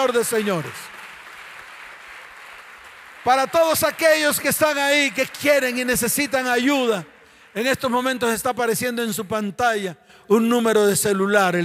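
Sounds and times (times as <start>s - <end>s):
speech: 0.0s - 1.0s, 3.2s - 11.6s
audience applauding: 0.0s - 7.0s.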